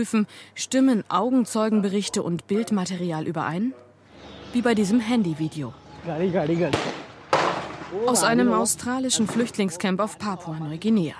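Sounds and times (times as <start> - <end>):
speech: 0.0 - 3.8, 4.5 - 6.9, 7.9 - 11.1
gunshots fired into the air: 6.7 - 8.0.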